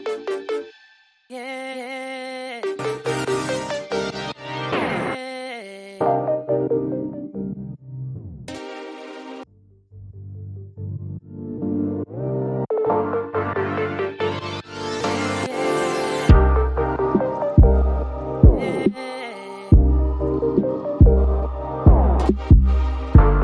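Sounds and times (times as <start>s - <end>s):
ambient music: 2.7s - 4.9s, 6.0s - 9.5s, 10.4s - 18.9s, 19.7s - 23.4s.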